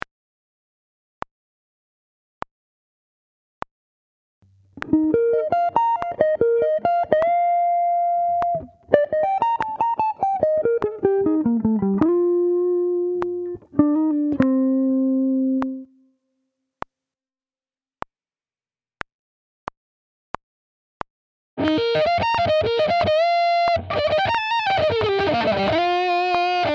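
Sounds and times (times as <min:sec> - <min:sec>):
sweep-picked guitar: 0:04.8 - 0:15.9, 0:21.6 - 0:26.7.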